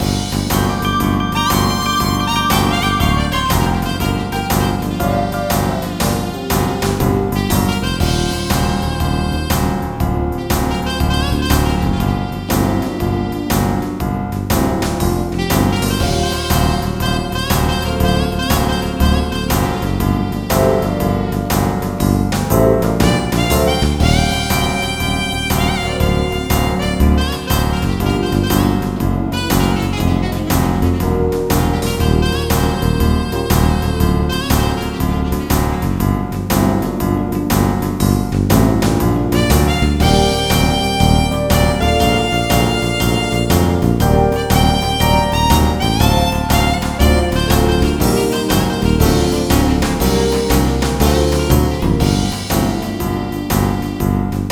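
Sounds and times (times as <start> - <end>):
jazz music: 0.0 - 54.5.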